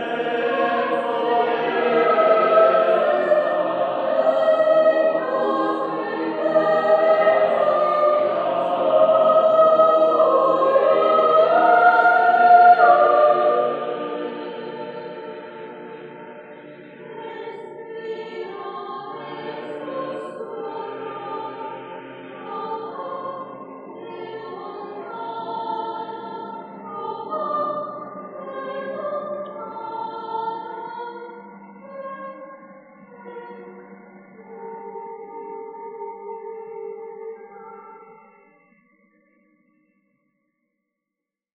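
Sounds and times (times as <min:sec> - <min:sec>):
mixed choir singing: 0:00.0 - 0:38.1.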